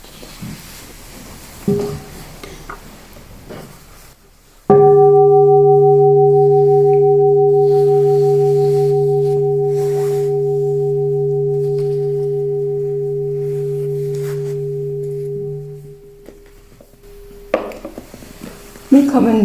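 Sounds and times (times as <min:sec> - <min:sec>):
bell ringing: 0:04.7 - 0:17.8.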